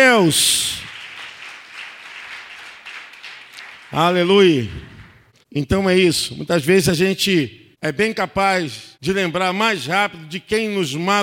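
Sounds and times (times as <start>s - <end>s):
speech: 0.0s - 0.8s, 3.9s - 4.9s, 5.5s - 11.2s
audience applauding: 0.8s - 5.2s.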